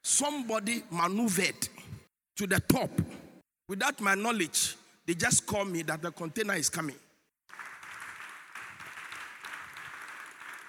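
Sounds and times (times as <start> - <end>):
speech: 0.2 - 1.7, 2.4 - 7.6
audience clapping: 7.5 - 10.6.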